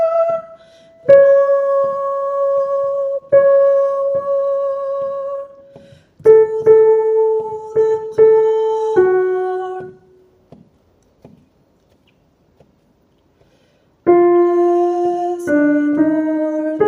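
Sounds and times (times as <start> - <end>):
soprano singing: 0.0 - 10.2, 14.1 - 16.8.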